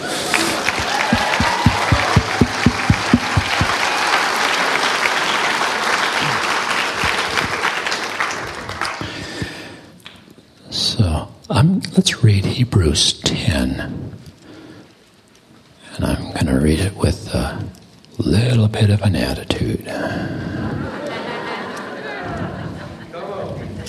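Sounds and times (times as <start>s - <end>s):
laughter: 0.0s - 4.3s, 20.4s - 23.8s
audience applause: 0.0s - 9.5s
speech: 12.0s - 14.1s, 16.4s - 20.6s.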